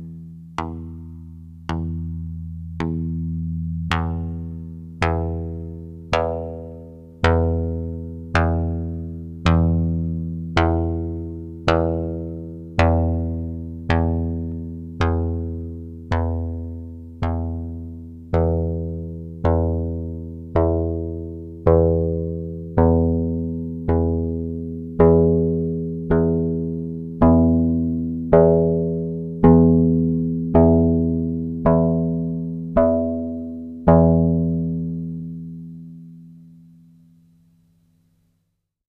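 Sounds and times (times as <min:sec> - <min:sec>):
plucked string: 0:00.0 - 0:37.0.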